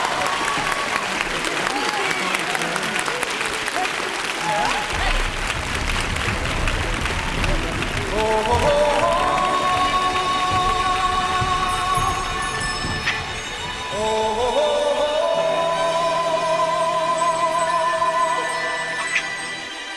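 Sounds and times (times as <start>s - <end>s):
audience applause: 0.0s - 14.1s
crowd voices: 0.0s - 19.9s
music: 4.9s - 19.9s.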